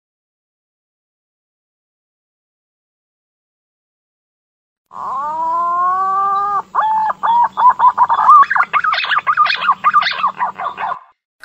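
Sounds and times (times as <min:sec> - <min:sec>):
green pigeon whistling: 0:05.0 - 0:11.1.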